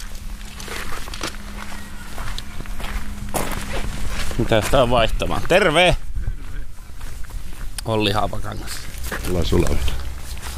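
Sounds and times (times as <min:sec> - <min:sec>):
footsteps crunching: 0:00.0 - 0:10.5
low steady hum: 0:00.0 - 0:10.5
speech: 0:04.4 - 0:06.0, 0:07.9 - 0:10.0.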